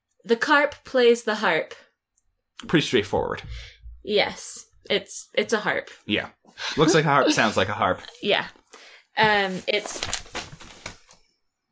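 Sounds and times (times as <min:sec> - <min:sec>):
speech: 0:00.2 - 0:01.8, 0:02.6 - 0:08.6, 0:09.2 - 0:10.3
papers being dropped: 0:09.3 - 0:11.2.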